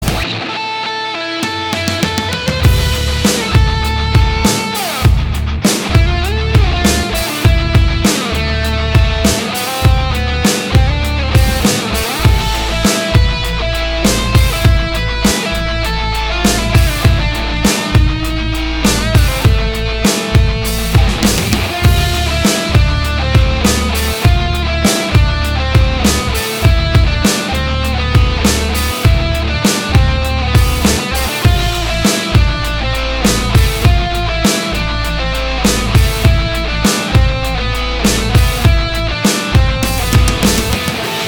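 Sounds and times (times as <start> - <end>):
guitar: 0.0 - 41.2.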